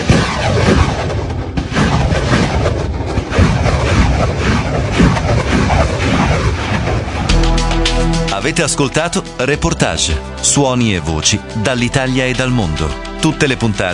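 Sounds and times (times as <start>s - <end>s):
rocket artillery fire: 0.0s - 7.4s
explosions: 0.0s - 8.4s
speech: 8.4s - 13.9s.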